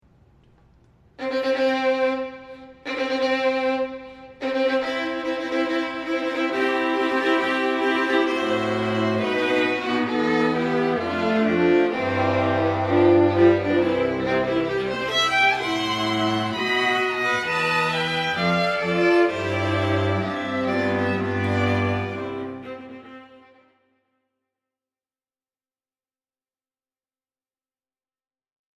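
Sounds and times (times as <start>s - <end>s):
string quartet playing wedding recessional: 1.2s - 23.7s.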